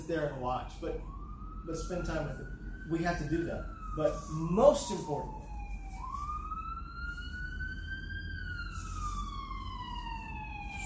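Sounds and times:
ambulance siren wailing: 0.0 - 10.8
speech: 0.1 - 5.4.

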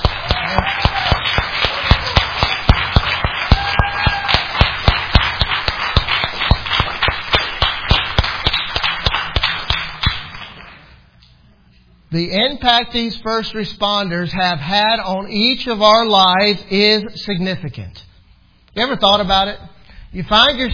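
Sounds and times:
crowd clapping: 0.0 - 10.9
speech: 12.2 - 18.1, 18.8 - 20.7.

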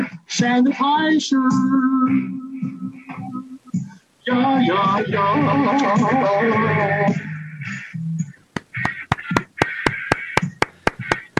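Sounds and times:
speech: 0.0 - 2.4, 4.3 - 7.2
small studio audience clapping: 8.6 - 11.3.

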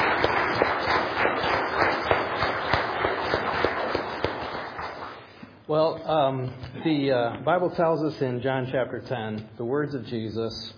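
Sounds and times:
audience applause: 0.0 - 5.3
speech: 6.1 - 10.7.

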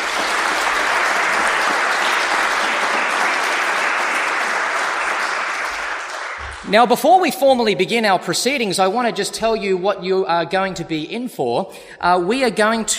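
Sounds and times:
round of applause: 0.0 - 7.0
speech: 6.7 - 12.9.

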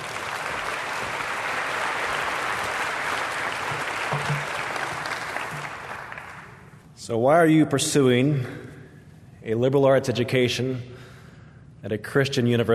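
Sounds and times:
audience applause welcoming a guest speaker at a Christian university: 0.0 - 6.6
speech: 7.1 - 8.7, 9.5 - 11.1, 11.8 - 12.7.

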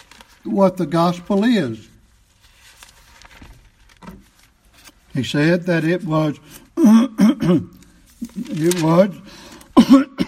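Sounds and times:
speech: 0.4 - 1.9, 5.2 - 10.1
person clearing throat: 6.8 - 8.4, 9.8 - 10.2.

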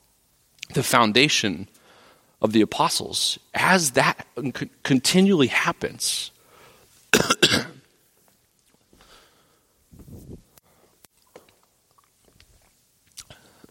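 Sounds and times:
speech: 0.7 - 1.8, 2.4 - 6.4
preacher coughing in a sermon: 7.1 - 7.9.

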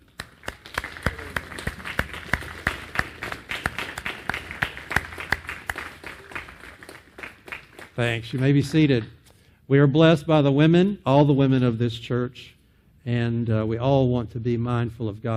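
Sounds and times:
audience round of applause: 0.0 - 8.6
speech: 8.0 - 15.3.

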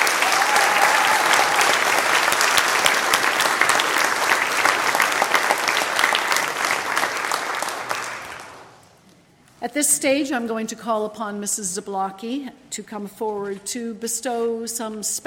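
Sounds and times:
audience applause for graduating class: 0.0 - 8.8
speech: 9.7 - 15.2.

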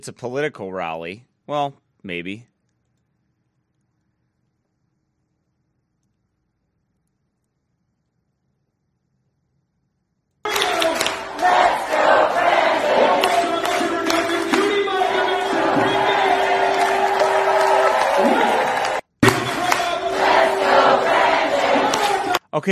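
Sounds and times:
speech: 0.0 - 2.5
church audience shouting in unison at a rally: 10.5 - 22.4.

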